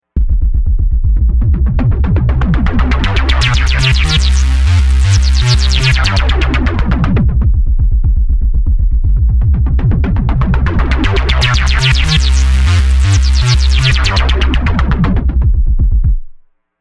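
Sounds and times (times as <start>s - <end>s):
bass: 0.0s - 16.5s.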